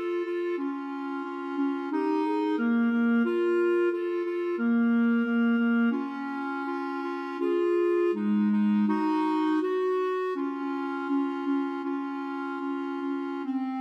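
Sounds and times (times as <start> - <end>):
clarinet trio playing a pavane: 0.0 - 13.7.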